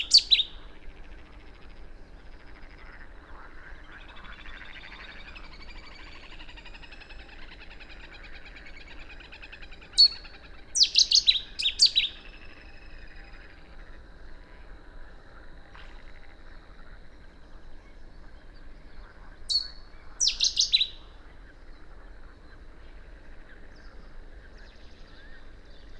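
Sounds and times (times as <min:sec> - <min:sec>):
Cetti's warbler Cettia cetti singing: 0:00.0 - 0:00.6, 0:01.8 - 0:13.9, 0:15.9 - 0:21.1, 0:22.0 - 0:25.9.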